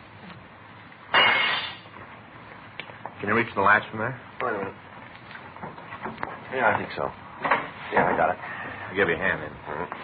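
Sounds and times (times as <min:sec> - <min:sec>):
glass being broken to get into a room: 0:01.1 - 0:01.9
speech: 0:03.2 - 0:04.8, 0:06.5 - 0:07.2, 0:07.9 - 0:10.0.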